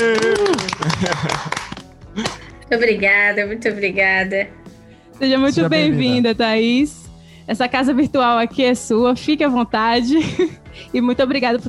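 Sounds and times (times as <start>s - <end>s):
laughter: 0.0s - 2.4s, 5.6s - 6.3s
audience clapping: 0.0s - 2.5s
speech: 2.7s - 4.6s, 5.2s - 11.6s.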